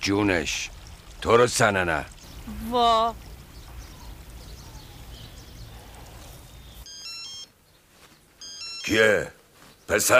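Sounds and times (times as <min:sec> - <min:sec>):
speech: 0:00.0 - 0:03.3, 0:08.9 - 0:10.1
low rumble: 0:01.9 - 0:06.8
mobile phone ringing: 0:06.9 - 0:07.6, 0:08.4 - 0:09.2.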